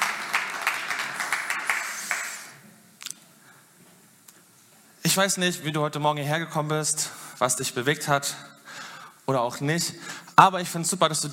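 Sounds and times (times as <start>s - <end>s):
audience applause: 0.0s - 2.6s
speech: 5.2s - 8.5s, 9.3s - 11.3s.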